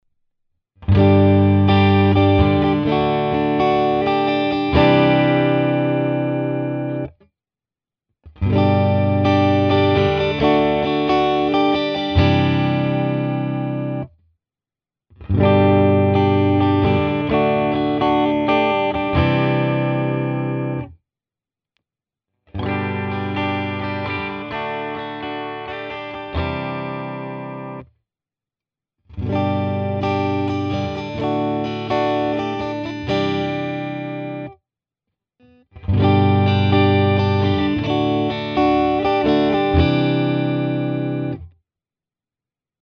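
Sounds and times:
clean guitar strumming in all positions: 0.8 - 7.1, 8.4 - 14.0, 15.2 - 20.9, 22.6 - 27.8, 29.2 - 34.5, 35.8 - 41.5.

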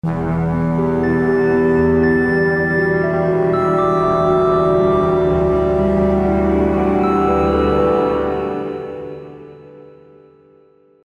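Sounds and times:
digital orchestra sphere music: 0.0 - 10.2.

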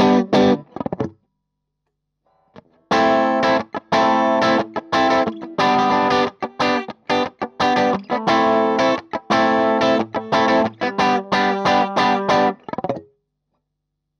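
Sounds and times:
clean gain guitar tone: 0.0 - 1.1, 2.9 - 13.1.

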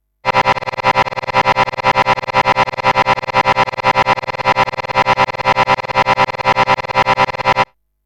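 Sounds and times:
granular synthesis retriggering: 0.3 - 7.7.

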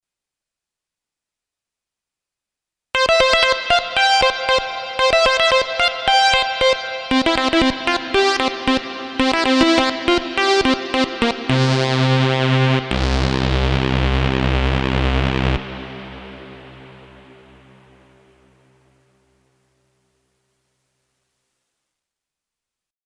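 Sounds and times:
Streichfett string synthesizer: 3.0 - 18.4.

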